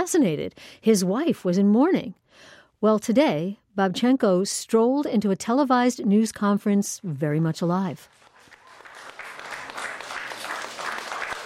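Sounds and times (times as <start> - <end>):
speech: 0.0 - 8.2
reporters applauding at a press conference: 8.1 - 11.4.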